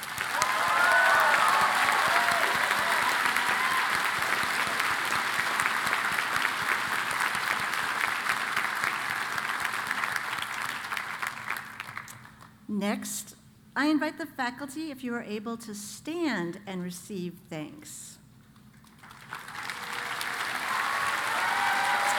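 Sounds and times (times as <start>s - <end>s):
audience applause for staff: 0.0s - 12.4s, 18.8s - 22.1s
speech: 12.8s - 18.1s.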